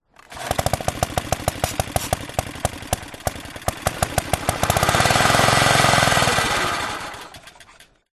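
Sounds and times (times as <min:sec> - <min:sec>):
vintage British Anzani Lawnrider 24in ride-on lawn mower starting and dying: 0:00.0 - 0:08.1.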